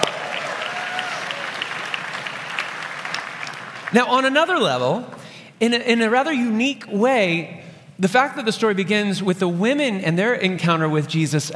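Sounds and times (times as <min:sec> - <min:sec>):
audience applause: 0:00.0 - 0:04.0
speech: 0:03.9 - 0:11.5.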